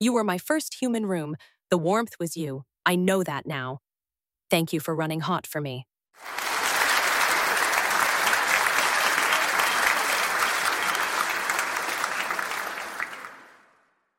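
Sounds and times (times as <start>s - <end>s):
speech: 0.0s - 3.8s, 4.5s - 6.4s
audience applause: 6.2s - 13.8s.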